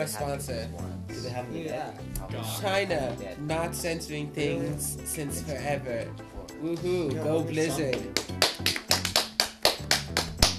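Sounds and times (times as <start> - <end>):
speech: 0.0 - 8.3
people clapping: 7.6 - 10.5.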